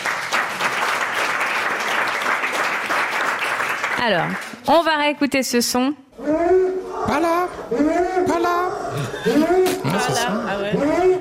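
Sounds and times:
studio audience applauding: 0:00.0 - 0:04.7
speech: 0:04.0 - 0:11.1
laughter: 0:08.9 - 0:11.1.

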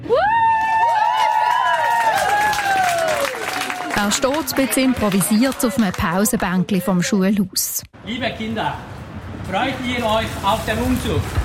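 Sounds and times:
high-pitched whoop: 0:00.0 - 0:03.9
children clapping and cheering: 0:00.2 - 0:06.7
speech: 0:04.0 - 0:08.9, 0:09.5 - 0:11.4.

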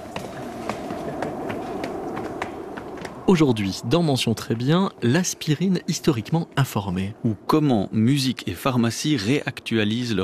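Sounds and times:
footsteps climbing a red staircase to a studio: 0:00.0 - 0:03.2
constant hiss: 0:00.0 - 0:10.2
speech: 0:03.3 - 0:10.2.

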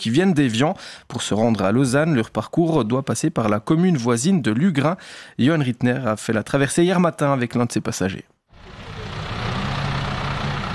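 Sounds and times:
speech: 0:00.0 - 0:08.8
road noise: 0:08.5 - 0:10.7
shuttle bus engine rumble at the Lugrin landing stage near Évian: 0:08.6 - 0:10.7.

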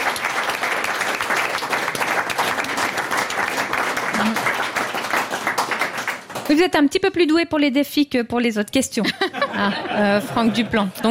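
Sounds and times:
audience applause: 0:00.0 - 0:06.6
speech: 0:06.5 - 0:11.0
laughter: 0:09.0 - 0:11.0.

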